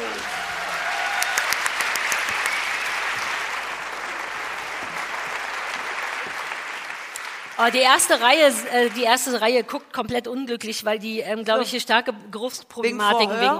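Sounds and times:
audience applause: 0:00.0 - 0:09.4
speech: 0:07.6 - 0:13.5.

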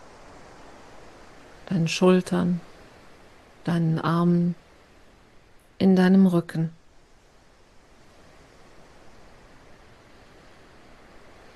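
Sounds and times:
ocean waves rolling: 0:00.0 - 0:11.5
speech: 0:01.7 - 0:02.7, 0:03.6 - 0:04.6, 0:05.8 - 0:06.8.

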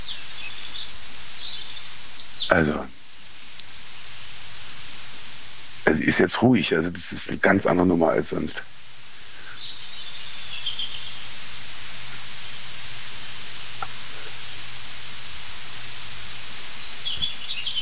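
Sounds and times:
European robin singing: 0:00.0 - 0:02.9, 0:09.4 - 0:11.4, 0:16.6 - 0:17.8
steady loud hiss of static: 0:00.0 - 0:17.8
speech: 0:02.5 - 0:03.0, 0:05.9 - 0:08.8.

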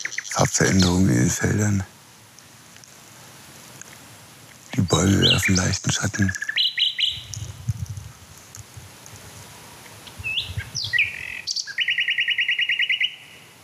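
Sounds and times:
male songbird singing chirps and trill: 0:00.0 - 0:01.2, 0:04.8 - 0:07.6, 0:10.1 - 0:13.6
faint noise: 0:00.0 - 0:13.6
speech: 0:00.4 - 0:02.0, 0:05.0 - 0:06.5.

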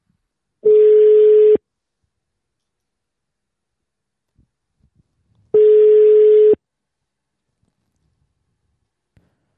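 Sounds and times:
telephone ringback tone after a number is dialed: 0:00.6 - 0:01.6, 0:05.6 - 0:06.6.

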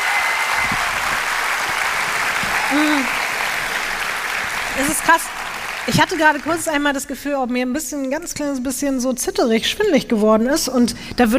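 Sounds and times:
applause: 0:00.0 - 0:07.1
speech: 0:02.7 - 0:03.2, 0:04.8 - 0:11.3.

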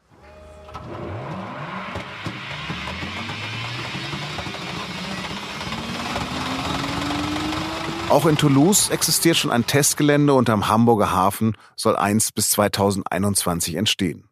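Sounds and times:
motor whine: 0:00.7 - 0:09.9
Hyperloop test pod running along a track: 0:02.0 - 0:10.5
speech: 0:08.1 - 0:14.3.

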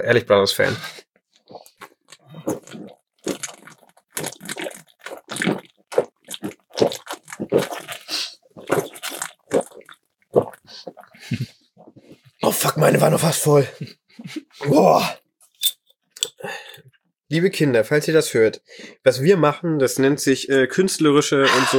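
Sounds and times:
speech: 0:00.0 - 0:01.0, 0:12.8 - 0:14.0, 0:14.7 - 0:15.2, 0:17.3 - 0:21.7
drinking beer from bottles: 0:00.6 - 0:13.2, 0:21.4 - 0:21.7.

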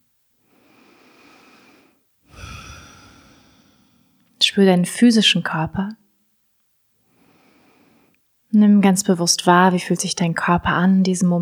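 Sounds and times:
person breathing deeply: 0:00.5 - 0:04.2, 0:07.1 - 0:08.1
speech: 0:04.5 - 0:06.0, 0:08.6 - 0:11.4.

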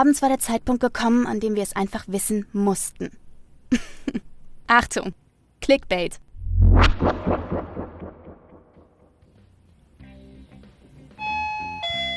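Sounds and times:
speech: 0:00.0 - 0:06.2
buzzy electronic tones: 0:06.4 - 0:08.7
doorbell chime: 0:11.2 - 0:12.1.

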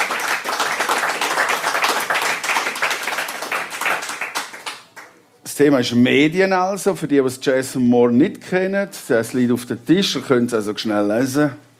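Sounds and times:
audience applause: 0:00.0 - 0:05.1
speech: 0:05.6 - 0:11.7.

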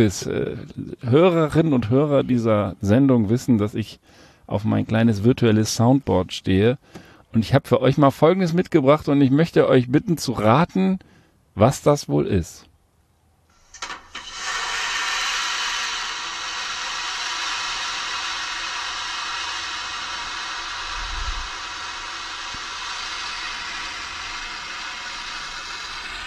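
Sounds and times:
speech: 0:00.0 - 0:12.7
airplane vacuum toilet flushing: 0:13.8 - 0:26.2.

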